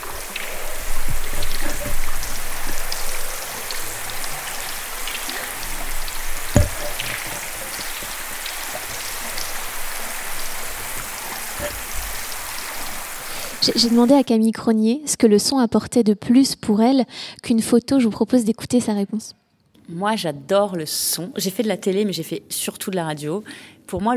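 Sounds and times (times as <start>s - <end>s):
water dripping from a melting Antarctic glacier: 0.0s - 14.3s
speech: 13.6s - 24.1s.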